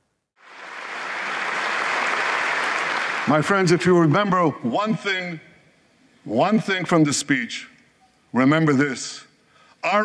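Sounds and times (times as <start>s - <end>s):
audience applause and ovation: 0.4s - 3.6s
people cheering: 0.5s - 3.5s
speech: 3.2s - 5.5s, 6.2s - 7.7s, 8.3s - 10.0s.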